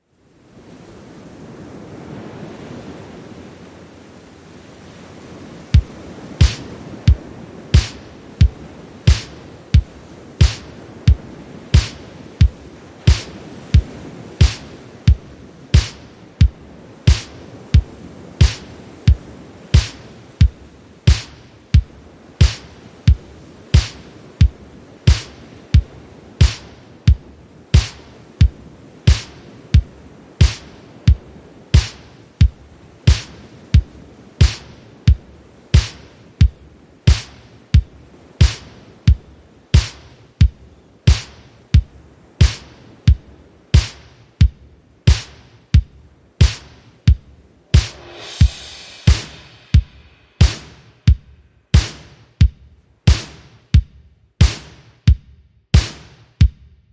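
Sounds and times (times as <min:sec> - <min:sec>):
drums: 0:05.7 - 0:56.8.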